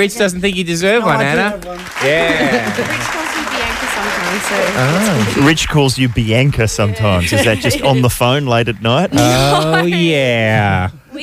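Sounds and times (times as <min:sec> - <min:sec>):
speech: 0:00.0 - 0:03.2, 0:04.0 - 0:11.2
studio audience clapping for a guest: 0:01.1 - 0:08.1
laughter: 0:01.9 - 0:10.9.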